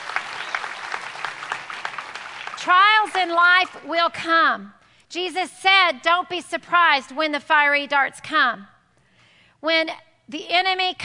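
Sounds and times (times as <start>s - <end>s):
applause from a church congregation: 0.0s - 3.9s
speech: 2.6s - 8.7s, 9.6s - 11.0s.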